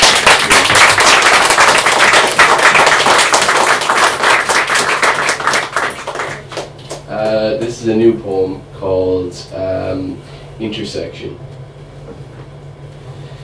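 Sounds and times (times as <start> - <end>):
audience applause: 0.0 - 7.0
speech: 7.8 - 11.5.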